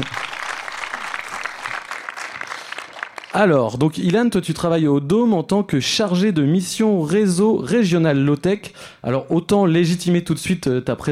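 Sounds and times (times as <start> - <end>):
audience applause: 0.0 - 3.6
speech: 3.4 - 11.1.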